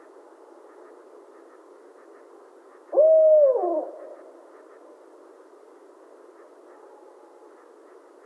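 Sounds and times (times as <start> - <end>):
barred owl hooting: 0.7 - 4.9.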